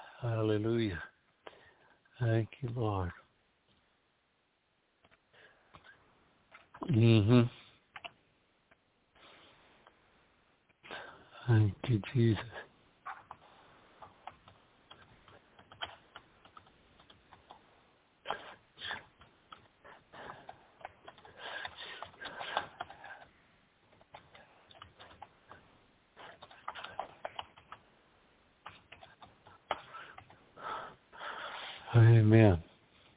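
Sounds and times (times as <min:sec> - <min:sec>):
speech: 0:00.2 - 0:01.1, 0:02.2 - 0:03.2, 0:06.8 - 0:07.6, 0:11.4 - 0:12.6
typing a text message on a phone: 0:07.9 - 0:08.2, 0:14.0 - 0:17.6, 0:18.3 - 0:23.3, 0:23.9 - 0:25.6, 0:26.2 - 0:27.9, 0:28.6 - 0:30.4.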